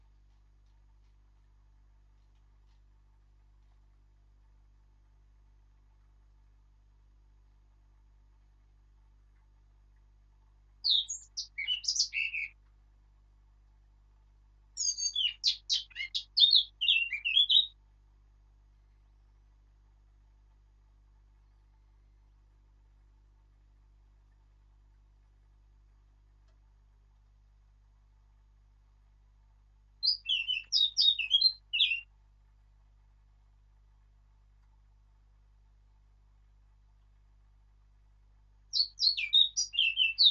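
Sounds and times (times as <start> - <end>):
Sylvia atricapilla singing: 10.8 - 12.6, 14.8 - 17.8, 30.0 - 32.1, 38.7 - 40.2.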